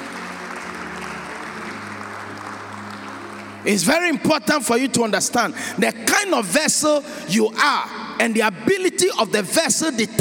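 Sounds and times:
crowd clapping: 0.0s - 5.4s
speech: 3.6s - 10.2s.

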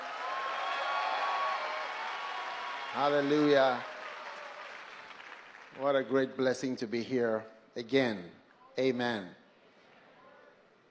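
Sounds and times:
audience applause: 0.0s - 6.1s
speech: 2.9s - 3.9s, 5.8s - 9.4s.

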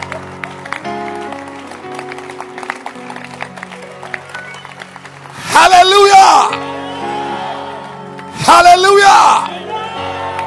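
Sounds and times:
church congregation clapping: 0.0s - 6.7s, 7.4s - 10.4s
speech: 8.5s - 9.5s.

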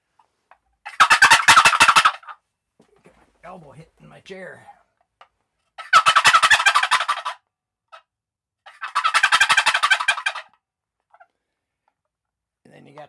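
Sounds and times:
turkey call gobbles: 0.8s - 2.4s, 5.8s - 7.4s, 8.7s - 11.3s
speech: 3.5s - 4.8s, 12.8s - 13.0s.

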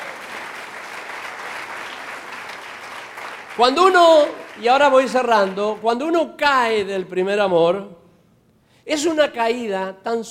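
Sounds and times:
audience applause: 0.0s - 5.8s
speech: 3.6s - 8.0s, 8.8s - 10.2s.

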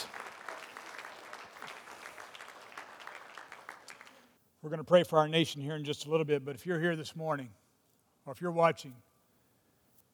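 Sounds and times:
audience clapping: 0.0s - 4.4s
speech: 4.6s - 7.6s, 8.2s - 9.1s.

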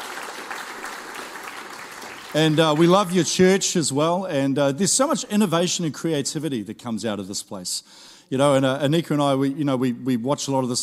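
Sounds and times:
audience applause: 0.0s - 3.2s
speech: 2.3s - 10.8s.

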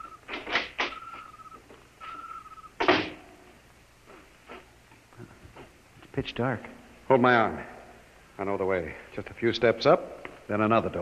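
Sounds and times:
door squealing: 0.0s - 3.2s
speech: 6.2s - 7.8s, 8.4s - 11.0s.

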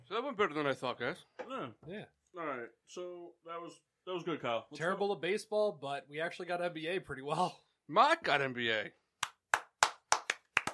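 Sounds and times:
speech: 0.2s - 9.0s
crowd hand clapping: 9.2s - 10.7s.

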